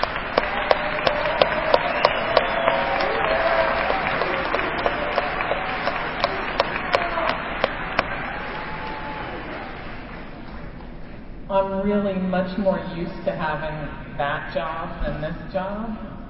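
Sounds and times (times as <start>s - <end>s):
audience applause: 0.0s - 10.8s
speech: 11.9s - 16.1s.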